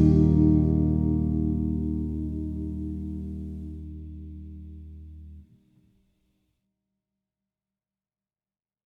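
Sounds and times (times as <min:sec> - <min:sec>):
triad vamp in E-flat major: 0:00.0 - 0:05.4.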